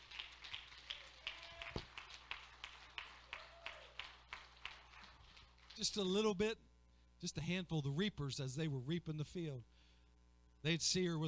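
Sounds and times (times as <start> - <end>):
audience clapping in unison: 0.0 - 6.2
faint low hum: 0.0 - 11.2
speech: 5.8 - 9.7, 10.6 - 11.2.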